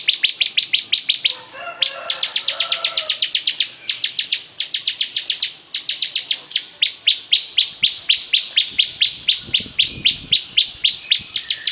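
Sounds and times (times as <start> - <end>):
bar-winged prinia singing vigorously: 0.0 - 11.7.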